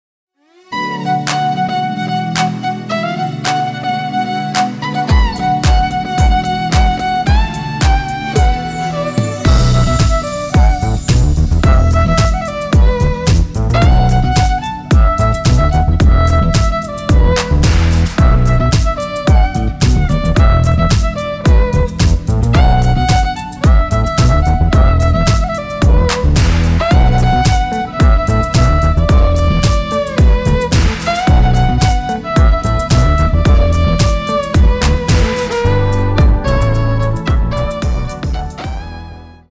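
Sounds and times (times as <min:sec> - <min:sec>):
violin playing: 0:00.4 - 0:39.5.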